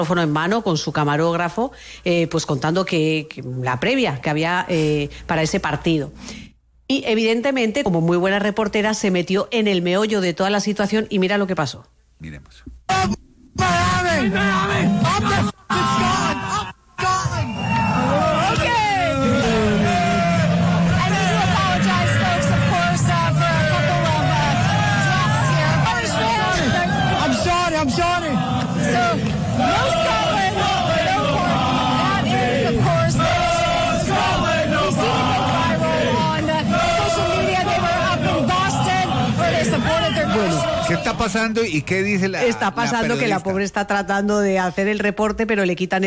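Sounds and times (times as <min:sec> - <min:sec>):
speech: 0:00.0 - 0:16.8, 0:41.2 - 0:46.0
drunken crowd cheering and shouting: 0:13.6 - 0:41.4.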